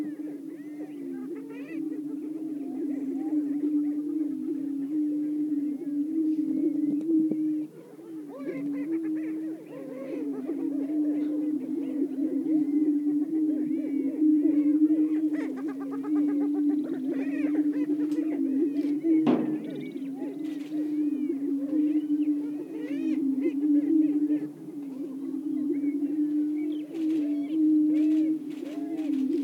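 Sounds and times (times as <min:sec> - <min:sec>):
greater prairie-chickens booming: 0:00.0 - 0:29.4
loud thump: 0:19.2 - 0:19.9.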